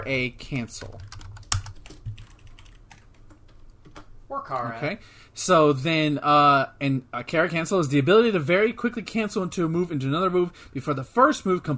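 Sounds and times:
speech: 0.0 - 1.2, 4.3 - 11.7
person typing a search term on a computer keyboard: 0.8 - 4.1.

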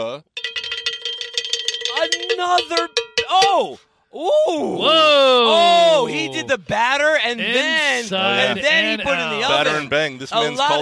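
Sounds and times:
speech: 0.0 - 0.4, 2.0 - 10.8
cowbell struck in a quick steady rhythm: 0.2 - 3.8.

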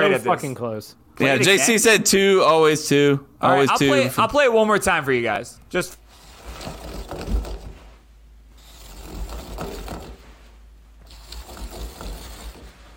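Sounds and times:
speech: 0.0 - 6.0
toilet paper roll spinning on holder: 6.1 - 8.0, 8.6 - 12.9.

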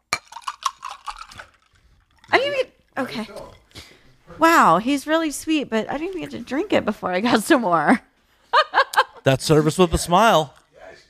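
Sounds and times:
glasses clinking in a toast: 0.0 - 3.9
speech: 2.3 - 3.6, 4.4 - 8.1, 9.2 - 10.6.

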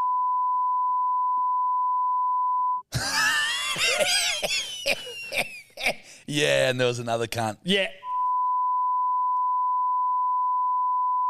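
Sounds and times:
high-pitched censor beep: 0.0 - 2.8, 8.0 - 11.2
laughter: 2.9 - 6.2
speech: 4.0 - 5.5, 6.3 - 8.0.

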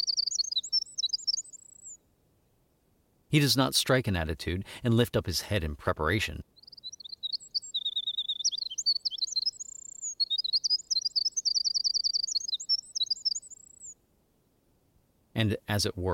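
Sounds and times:
songbird singing: 0.0 - 2.1, 6.4 - 14.6
speech: 3.3 - 6.5, 15.4 - 16.1.

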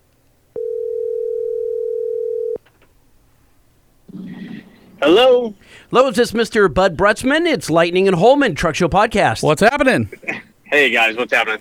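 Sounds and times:
telephone dial tone: 0.6 - 2.6
speech: 5.0 - 11.5.

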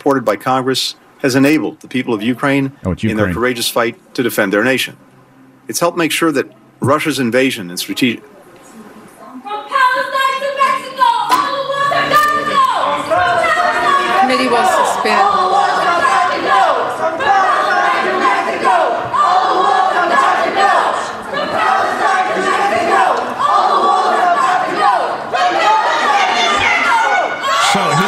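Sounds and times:
speech: 0.0 - 5.1, 5.7 - 8.3, 14.3 - 15.3
protesters shouting at a hearing: 9.7 - 28.0.

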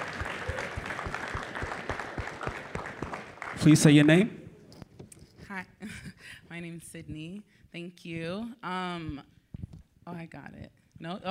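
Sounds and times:
audience applause after a presentation: 0.0 - 4.4
speech: 3.6 - 4.4, 6.6 - 9.3, 10.1 - 11.2.

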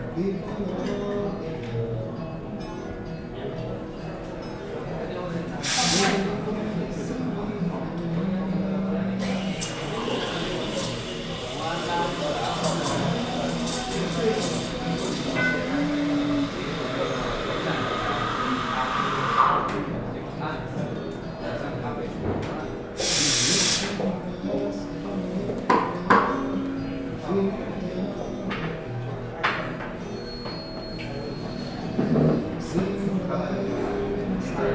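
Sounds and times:
murmur of voices in a café: 0.0 - 34.7.

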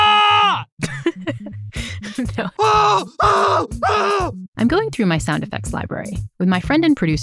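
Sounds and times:
man yelling: 0.0 - 0.7, 2.6 - 4.4
speech: 2.2 - 7.2.

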